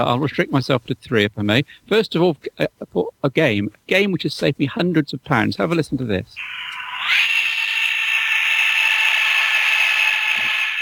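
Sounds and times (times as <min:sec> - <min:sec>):
speech: 0:00.0 - 0:07.2
F-15 Eagle jet taking off: 0:06.4 - 0:10.7.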